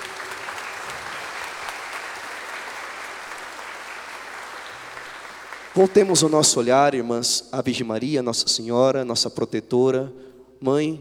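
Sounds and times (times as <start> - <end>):
audience applause for the sisters: 0.0 - 6.4
speech: 5.8 - 11.0.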